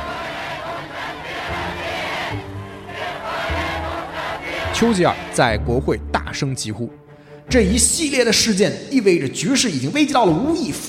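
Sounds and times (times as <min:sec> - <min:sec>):
crowd cheering in a square: 0:00.0 - 0:05.5
speech: 0:04.8 - 0:10.8.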